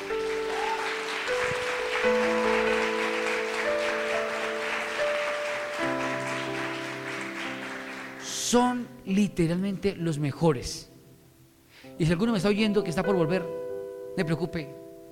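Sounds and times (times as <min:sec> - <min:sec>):
crowd applause: 0:00.0 - 0:08.5
sustained keyboard chords: 0:00.0 - 0:15.1
speech: 0:08.5 - 0:10.9, 0:12.0 - 0:13.5, 0:14.2 - 0:14.8.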